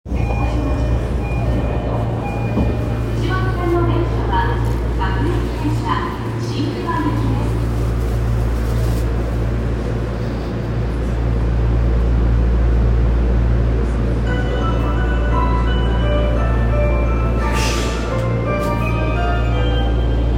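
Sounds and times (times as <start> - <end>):
train: 0.0 - 20.3.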